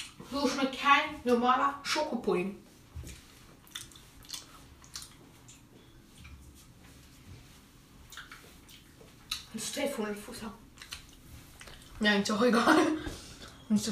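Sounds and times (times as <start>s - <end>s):
speech: 0.3s - 2.7s, 9.5s - 10.6s, 12.0s - 13.8s
person chewing jelly beans: 3.0s - 6.7s, 8.1s - 9.5s, 10.6s - 12.0s.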